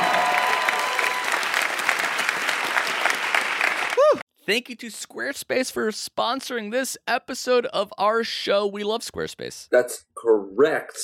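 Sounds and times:
round of applause: 0.0s - 4.2s
speech: 4.5s - 11.0s.

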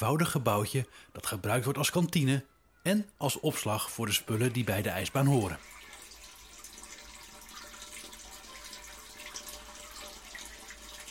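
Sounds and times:
speech: 0.0s - 5.8s
water draining out of an outdoor ice skating rink: 4.0s - 11.1s.

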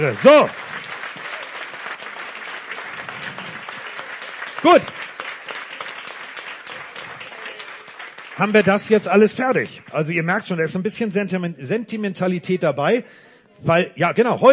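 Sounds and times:
speech: 0.0s - 0.8s, 4.6s - 5.0s, 8.4s - 14.5s
audience applause: 0.0s - 10.4s.

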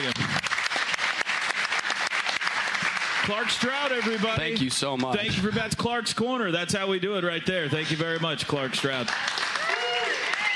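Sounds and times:
audience applause: 0.0s - 5.3s, 7.7s - 10.5s
speech: 3.2s - 9.4s.

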